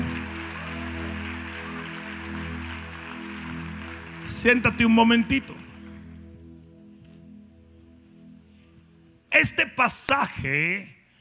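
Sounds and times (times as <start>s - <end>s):
audience applause: 0.0s - 6.0s
low sustained drone: 0.0s - 9.3s
speech: 4.3s - 5.6s, 9.4s - 11.0s.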